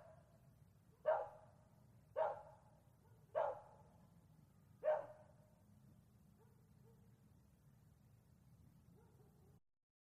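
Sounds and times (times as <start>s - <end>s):
distant bark at night: 1.0s - 1.5s, 2.2s - 3.9s, 4.8s - 5.3s, 8.9s - 9.6s.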